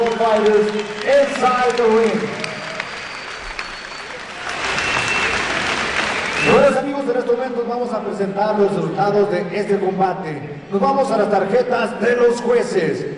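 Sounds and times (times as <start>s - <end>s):
amplified announcer's voice: 0.0s - 2.6s, 6.4s - 13.1s
boxing arena crowd applauding: 0.0s - 6.9s
speech: 0.2s - 2.6s, 6.5s - 13.1s.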